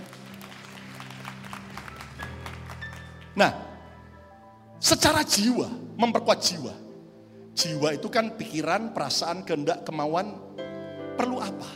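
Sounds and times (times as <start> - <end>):
audience applause: 0.0 - 3.4
speech: 3.4 - 3.7, 4.8 - 6.8, 7.6 - 10.5, 11.2 - 11.7.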